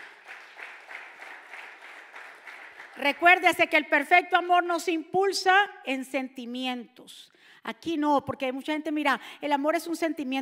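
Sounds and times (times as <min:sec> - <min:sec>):
audience applauding loudly: 0:00.0 - 0:03.4
speech: 0:03.0 - 0:10.3.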